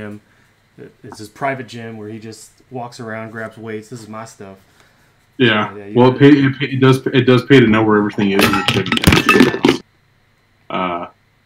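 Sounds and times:
speech: 0.0s - 4.7s, 5.4s - 9.8s
pair of glasses knocked off, clattering on a hard surface: 8.2s - 9.8s.

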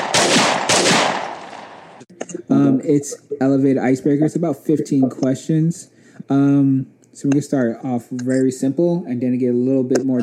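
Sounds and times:
gunshot sound effect: 0.0s - 2.0s
speech: 2.2s - 10.2s.

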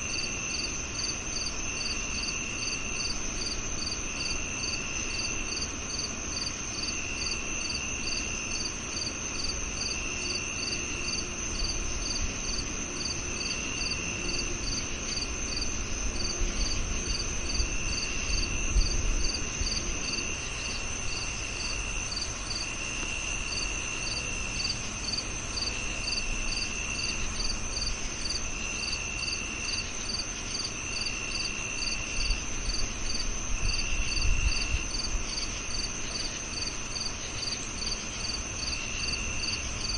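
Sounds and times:
background hiss: 0.0s - 39.9s
crickets chirping: 0.0s - 39.9s
insect drone: 0.0s - 39.9s.

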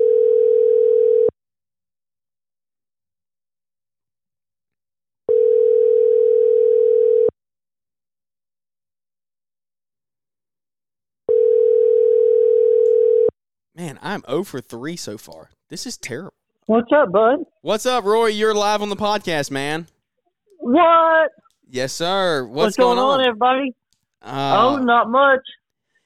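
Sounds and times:
phone ringback tone: 0.0s - 1.4s, 5.3s - 7.3s, 11.3s - 13.3s
speech: 14.0s - 20.0s, 20.7s - 25.6s.

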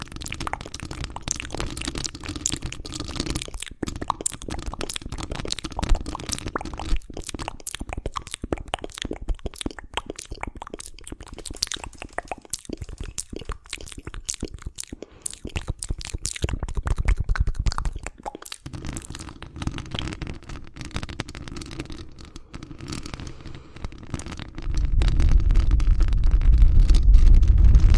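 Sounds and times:
wet mouth clicks and crackles: 0.0s - 24.9s
low rumbling swell: 24.7s - 27.9s.

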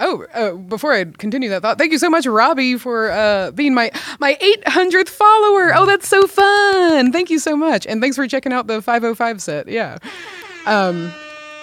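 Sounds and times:
speech: 0.1s - 11.2s
air horn blast: 10.3s - 11.6s.

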